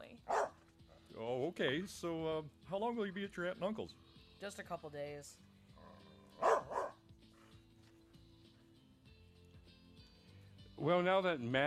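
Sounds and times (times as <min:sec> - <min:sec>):
two dogs barking excitedly: 0:00.2 - 0:01.0, 0:05.8 - 0:07.5
speech: 0:01.2 - 0:05.5, 0:10.8 - 0:11.6.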